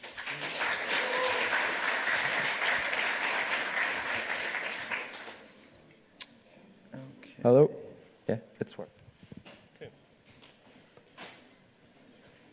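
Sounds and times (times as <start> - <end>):
audience applause: 0.0 - 5.5
speech: 7.4 - 9.0.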